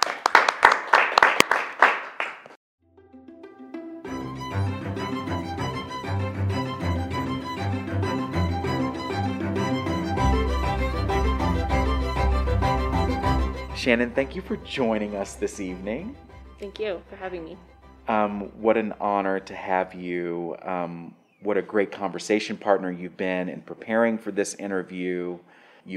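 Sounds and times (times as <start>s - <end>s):
audience applause welcoming a guest at an evening theology interview event: 0.0s - 2.6s
music: 2.8s - 20.1s
speech: 13.8s - 25.9s.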